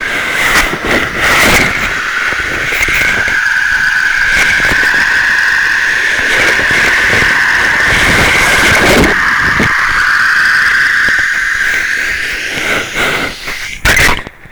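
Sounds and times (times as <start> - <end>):
hydrophone being pulled in from the Sacramento River: 0.0 - 14.4.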